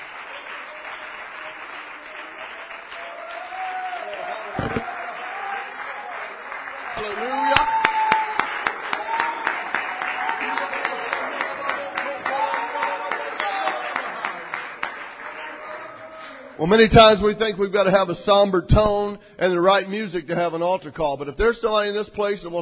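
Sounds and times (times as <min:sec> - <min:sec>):
audience hand clapping: 0:00.0 - 0:16.6
speech: 0:16.7 - 0:22.6.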